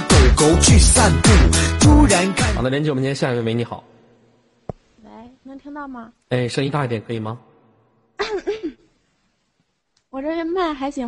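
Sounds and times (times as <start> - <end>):
speech: 0.4 - 3.9, 5.5 - 7.5, 8.2 - 8.6, 10.1 - 11.0
person coughing: 8.2 - 8.9.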